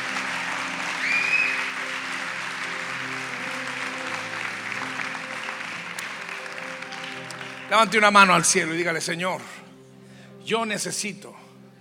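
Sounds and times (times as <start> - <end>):
audience applause: 0.0 - 8.8
high whistle: 0.9 - 1.8
speech: 7.7 - 9.6, 10.5 - 11.4.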